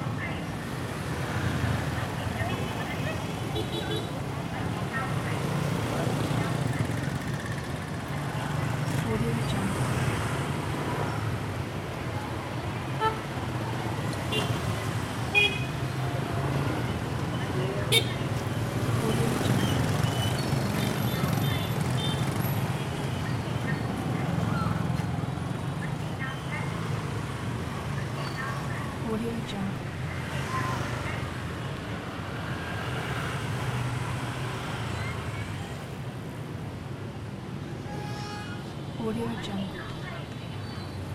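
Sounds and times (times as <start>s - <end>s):
busy traffic in Saigon: 0.0s - 41.1s.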